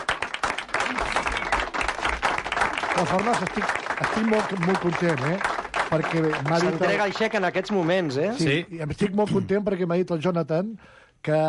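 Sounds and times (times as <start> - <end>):
audience applause for a charity cheque handover: 0.0 - 8.4
speech: 3.0 - 11.4.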